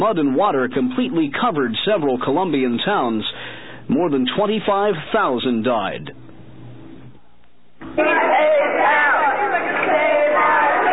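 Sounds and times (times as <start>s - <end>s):
speech: 0.0s - 6.2s, 8.0s - 8.4s
crowd of angry parents shouting and chanting at school boycott: 7.9s - 10.9s.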